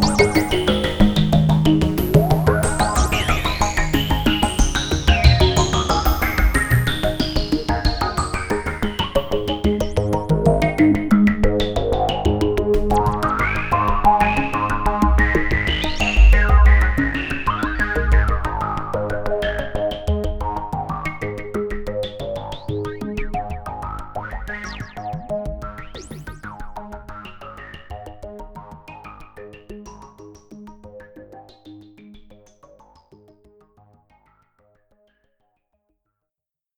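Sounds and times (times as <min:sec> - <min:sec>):
JupiterX Jupiter8 synthesizer sequence with filter modulation: 0:00.0 - 0:26.6.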